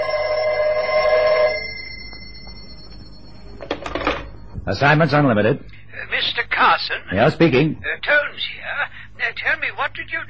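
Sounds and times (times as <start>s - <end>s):
telephone ringing: 0.0s - 4.6s
speech: 4.7s - 10.2s.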